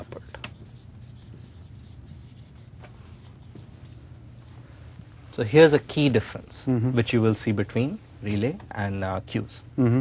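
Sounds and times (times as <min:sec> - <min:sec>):
faint scratching of writing: 0:00.0 - 0:05.2
speech: 0:05.4 - 0:09.9.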